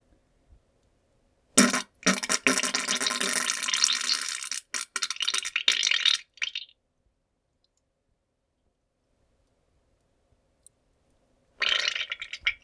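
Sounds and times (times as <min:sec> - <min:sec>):
farting sounds: 0:01.6 - 0:05.9, 0:11.6 - 0:12.5.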